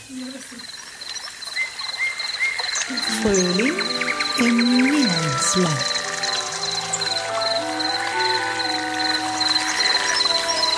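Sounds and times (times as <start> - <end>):
spring birdsong ambience recording: 0.0 - 10.7
speech: 0.1 - 0.8, 2.9 - 5.9.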